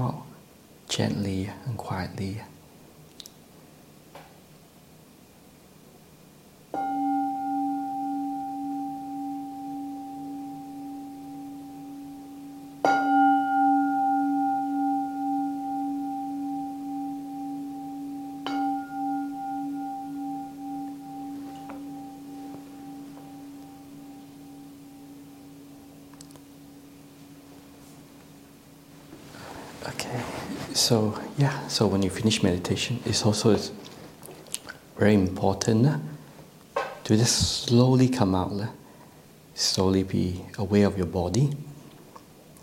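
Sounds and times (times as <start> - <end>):
speech: 0.9 - 2.5, 30.9 - 33.9, 35.0 - 36.2, 37.1 - 38.8, 39.6 - 41.7
meditation gong: 6.7 - 30.2.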